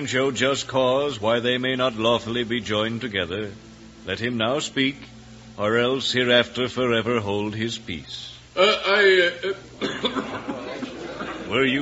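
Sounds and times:
speech: 0.0 - 10.6, 11.5 - 11.8
man coughing during a wedding ceremony: 8.6 - 10.5
laughter: 8.6 - 11.8.

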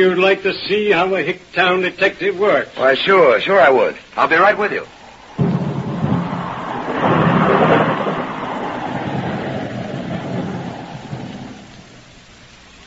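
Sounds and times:
speech: 0.0 - 5.5
rain: 0.0 - 12.8
thunderstorm: 4.9 - 12.5.

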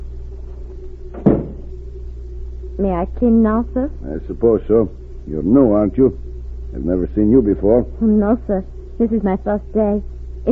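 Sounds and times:
faint steady hum: 0.0 - 10.5
knock on a hotel room wooden door: 1.2 - 1.7
speech: 2.8 - 10.5.

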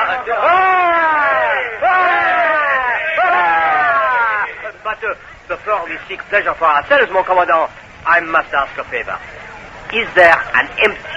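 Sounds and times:
men giving three cheers: 0.0 - 5.0
speech: 0.2 - 0.7, 4.9 - 11.1.

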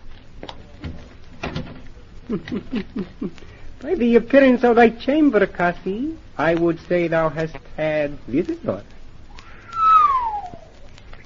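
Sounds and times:
door shutting with knocking clunks and a thud: 0.8 - 1.8
laughter: 2.2 - 3.5
speech: 2.3 - 9.0
brief rising voice-like chirps: 9.4 - 10.8.

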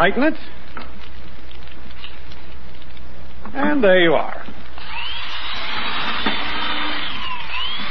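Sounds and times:
speech: 0.0 - 0.9, 3.5 - 4.6
electric drill drilling through a board: 4.8 - 7.9.

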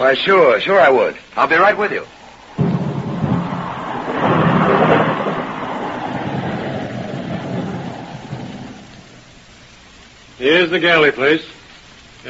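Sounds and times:
speech: 0.0 - 2.2, 10.5 - 11.6
rainstorm: 0.0 - 12.2
thunder: 2.2 - 9.6.

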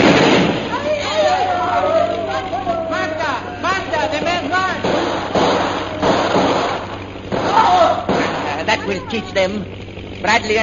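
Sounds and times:
bomb exploding in a wartime adventure drama: 0.0 - 0.7, 4.8 - 8.6
voices rising over the blast: 0.6 - 9.5
speech: 9.4 - 10.6.

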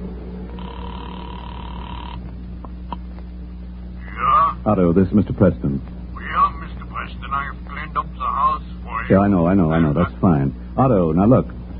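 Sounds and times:
low telephone line hum: 0.0 - 11.7
telephone dial tone in a phone booth: 0.6 - 2.2
speech: 4.6 - 6.0, 9.1 - 11.6.

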